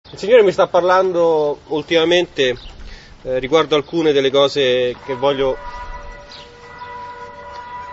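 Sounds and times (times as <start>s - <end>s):
speech: 0.1s - 6.4s
church bells ringing: 4.4s - 7.9s.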